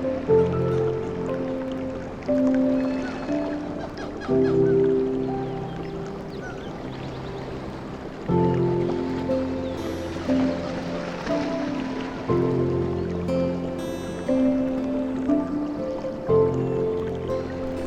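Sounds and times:
ocean water sound: 0.0s - 17.8s
slow sustained sleep music with soft chords: 0.0s - 17.8s
bird chirps: 2.8s - 7.5s.

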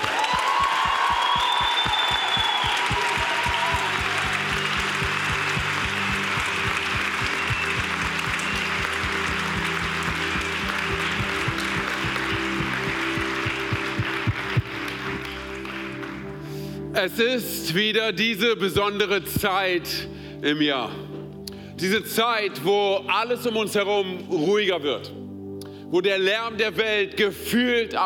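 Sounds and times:
big audience applause: 0.0s - 16.4s
speech: 17.0s - 21.0s, 21.8s - 25.2s, 25.9s - 28.0s.

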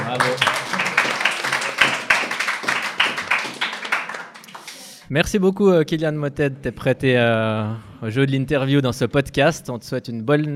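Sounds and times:
applause: 0.0s - 5.1s
speech: 0.1s - 0.7s, 5.1s - 10.5s.

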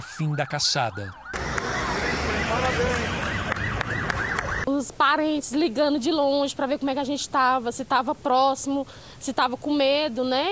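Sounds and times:
speech: 0.0s - 1.2s, 2.1s - 3.4s, 4.7s - 10.5s
police car sirens wailing: 0.0s - 4.7s
dense noisy street din with voices: 0.0s - 10.5s.

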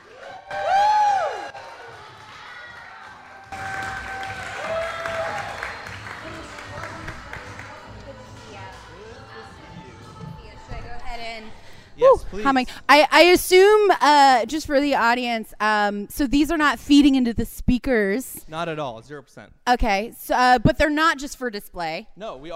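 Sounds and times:
audience applause welcoming a guest: 0.0s - 9.0s
speech: 12.1s - 22.5s.

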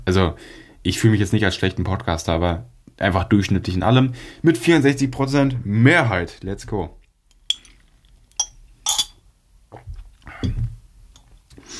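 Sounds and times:
speech: 0.1s - 7.0s
glass drinking straw clinking against a glass: 7.5s - 7.8s, 8.4s - 9.2s.

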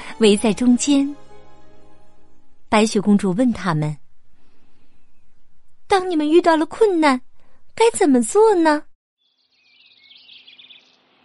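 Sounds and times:
speech: 0.2s - 1.2s, 2.7s - 4.0s, 5.9s - 8.9s
small bird singing a chirping song: 9.2s - 11.2s.

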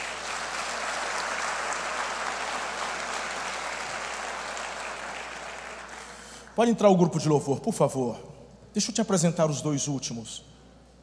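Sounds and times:
sustained applause from a large audience: 0.0s - 6.4s
speech: 6.6s - 10.5s.

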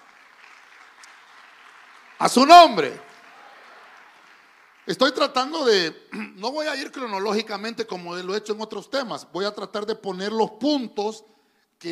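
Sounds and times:
audience applause: 0.0s - 5.4s
speech: 2.2s - 3.1s, 4.9s - 11.9s.

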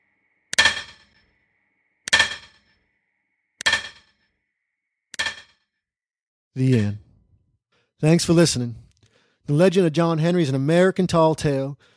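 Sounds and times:
hammer pounding steel and stone: 0.5s - 1.2s, 2.1s - 2.8s, 3.6s - 4.2s, 5.2s - 5.6s
speech: 6.6s - 7.0s, 8.0s - 8.8s, 9.5s - 11.9s.

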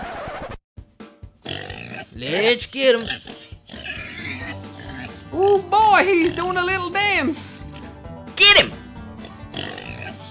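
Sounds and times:
pig grunting: 1.4s - 6.9s, 9.2s - 10.2s
speech: 2.2s - 3.3s, 5.4s - 7.5s.

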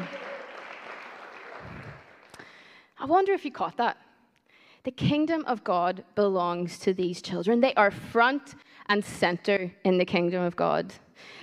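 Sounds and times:
audience applause: 0.0s - 2.4s
speech: 3.0s - 4.0s, 4.8s - 11.4s.

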